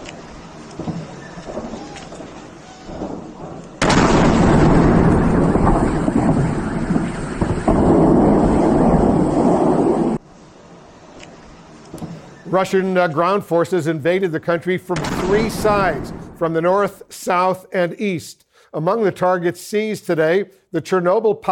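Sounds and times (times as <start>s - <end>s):
quiet low rumble: 0.0s - 11.0s
missile and artillery blast at an airport in southeastern Ukraine: 0.8s - 10.2s, 15.0s - 16.5s
speech: 12.6s - 21.5s.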